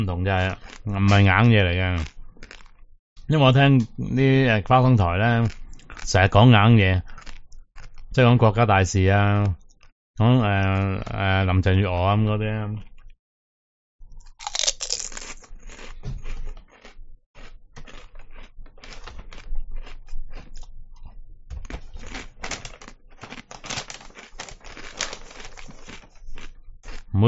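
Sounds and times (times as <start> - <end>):
speech: 0.0 - 2.2, 3.3 - 7.2, 8.1 - 9.6, 10.2 - 12.9
crunchy chewing of food: 0.3 - 2.9, 5.2 - 8.3, 9.0 - 9.9, 14.2 - 27.1.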